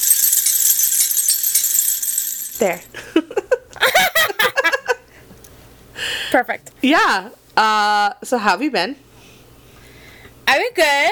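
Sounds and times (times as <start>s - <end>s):
little bells jingling: 0.0s - 3.0s
speech: 2.6s - 3.4s, 6.3s - 9.0s, 10.6s - 11.1s
laughter: 3.0s - 5.1s.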